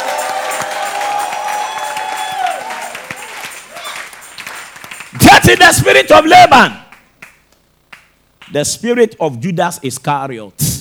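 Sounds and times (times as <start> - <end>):
audience clapping: 0.0 - 6.1, 6.8 - 8.7
crowd shouting and cheering: 0.0 - 6.7
speech: 5.4 - 6.8, 8.5 - 10.7.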